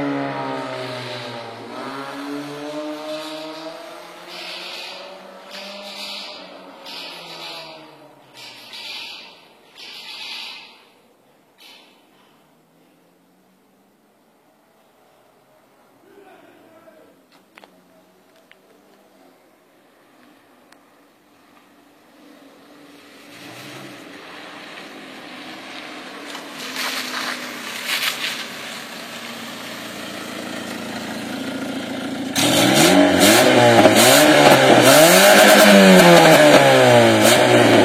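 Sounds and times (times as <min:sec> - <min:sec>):
straight-piped Hyundai Accent engine: 0:00.0 - 0:08.8, 0:22.1 - 0:37.8.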